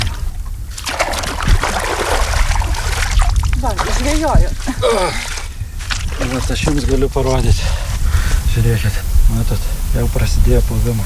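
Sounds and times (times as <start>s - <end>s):
water trickling and running in a waterlogged farm field: 0.0s - 7.7s
speech: 4.2s - 5.3s, 6.3s - 7.9s, 8.5s - 11.0s.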